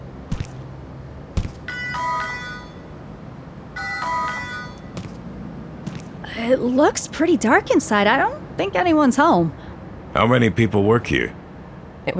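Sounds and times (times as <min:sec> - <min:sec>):
door buzzer ringing: 0:01.7 - 0:02.9, 0:03.8 - 0:05.0
speech: 0:06.4 - 0:11.4.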